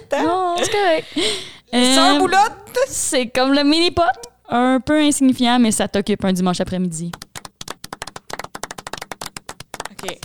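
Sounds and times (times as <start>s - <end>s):
speech: 0.1s - 7.3s
hand clapping: 7.1s - 10.2s.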